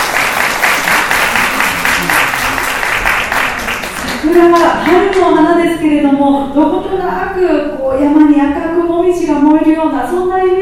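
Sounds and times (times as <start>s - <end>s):
audience applause: 0.0s - 4.7s
speech: 4.3s - 10.5s.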